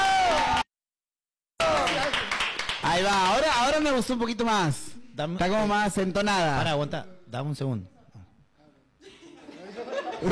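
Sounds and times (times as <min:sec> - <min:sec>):
audience cheering: 0:00.0 - 0:00.7, 0:01.6 - 0:02.4
audience applause: 0:01.6 - 0:02.8
speech: 0:03.0 - 0:07.9
laughter: 0:09.0 - 0:10.2.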